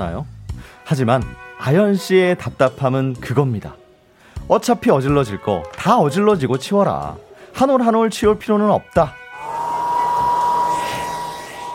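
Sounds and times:
speech: 0.0 - 3.8, 4.5 - 9.2
hair dryer blowing: 9.4 - 11.7.

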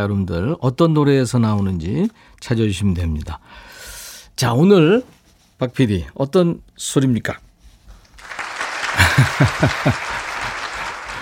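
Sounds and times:
speech: 0.0 - 3.8, 4.4 - 7.4, 9.2 - 10.2
applause sound effect: 8.2 - 11.2
laughter: 8.6 - 11.2.

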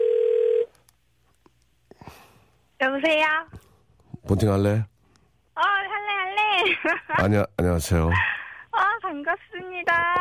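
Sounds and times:
telephone tone of a call being dialed: 0.0 - 0.7
speech: 2.8 - 3.6, 4.2 - 4.9, 6.6 - 8.3, 9.1 - 10.2
laughter: 6.5 - 7.3.

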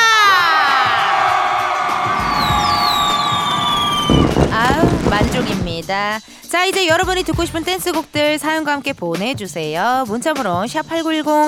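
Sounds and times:
crowd cheering and shouting: 0.0 - 5.4
speech: 5.8 - 11.4.

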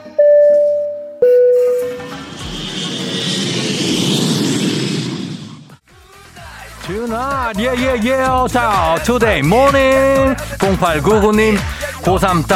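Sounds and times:
electronic chime tones: 0.2 - 2.4
airplane jet engine roaring during takeoff: 1.4 - 5.8
speech: 7.5 - 12.5.

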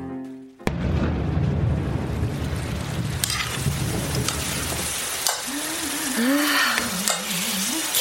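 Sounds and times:
heavy winter rain: 0.7 - 7.9.

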